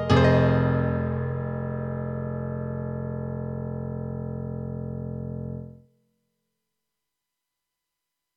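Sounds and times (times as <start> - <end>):
KORG M3 synthesizer M1 piano sound: 0.0 - 5.7.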